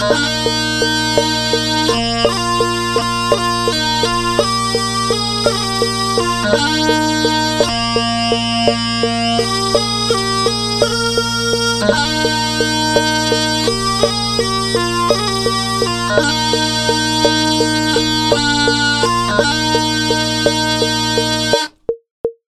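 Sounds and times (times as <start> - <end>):
bagpipe section playing a folk anthem: 0.0 - 21.8.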